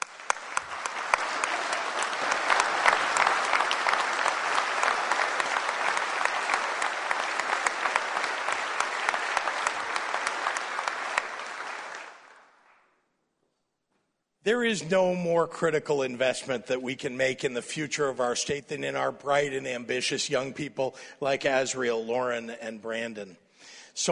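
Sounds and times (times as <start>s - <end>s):
audience applause: 0.0s - 12.8s
speech: 14.5s - 23.4s, 24.0s - 24.1s.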